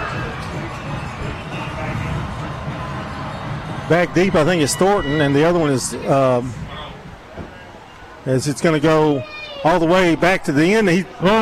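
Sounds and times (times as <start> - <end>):
people shouting: 0.0 - 7.0
large stadium crowd cheering at kickoff: 0.0 - 11.3
speech: 3.9 - 6.7, 8.2 - 11.3.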